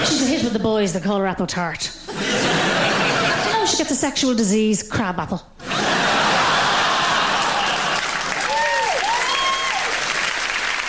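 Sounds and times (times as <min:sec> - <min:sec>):
speech: 0:00.4 - 0:02.9, 0:03.7 - 0:05.6
laughter: 0:02.1 - 0:03.8, 0:05.6 - 0:08.3
audience applause: 0:06.0 - 0:10.8.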